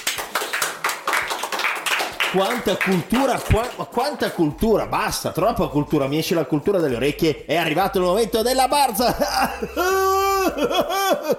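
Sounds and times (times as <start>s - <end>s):
audience applause: 0.0s - 4.6s
speech: 2.3s - 11.3s
laughter: 8.9s - 11.3s.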